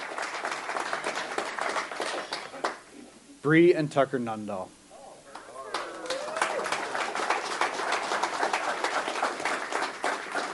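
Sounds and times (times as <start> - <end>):
crowd applause: 0.0 - 2.8, 5.6 - 10.5
speech: 3.4 - 4.8.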